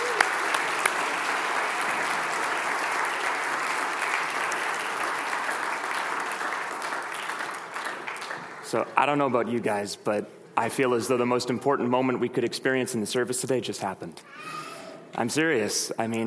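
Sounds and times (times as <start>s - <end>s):
audience applause: 0.0s - 8.8s
speech: 8.7s - 16.2s.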